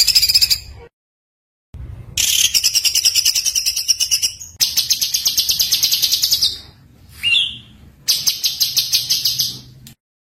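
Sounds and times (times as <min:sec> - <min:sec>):
white-eye twittering song: 0:02.2 - 0:09.7.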